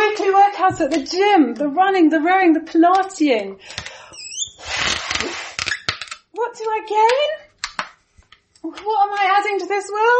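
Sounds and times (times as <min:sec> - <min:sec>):
speech: 0:00.7 - 0:03.9, 0:06.4 - 0:07.4, 0:08.6 - 0:10.1
small rubber balloon squeaking as it's inflated: 0:04.1 - 0:06.2.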